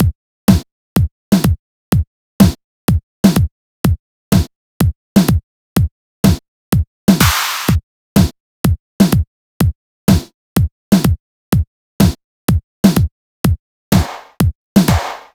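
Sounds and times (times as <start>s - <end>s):
kick drum: 0.0s - 15.3s
snare drum: 7.1s - 7.8s, 13.9s - 15.3s.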